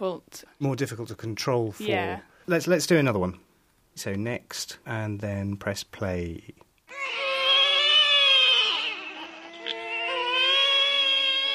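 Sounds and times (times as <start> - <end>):
speech: 0.0 - 7.2
several babies crying: 6.9 - 11.5.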